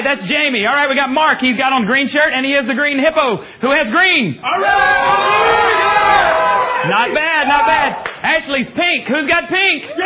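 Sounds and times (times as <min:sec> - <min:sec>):
speech: 0:00.0 - 0:10.0
crowd cheering and shouting: 0:04.4 - 0:08.1.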